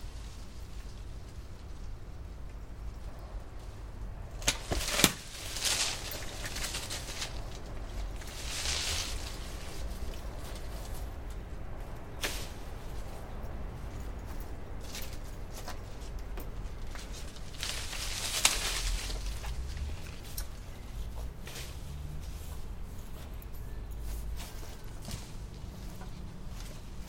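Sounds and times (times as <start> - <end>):
crackling and snapping branches of apple trees being cut down: 0.0 - 14.0, 14.8 - 21.8
light rustles and knocks: 4.4 - 27.0.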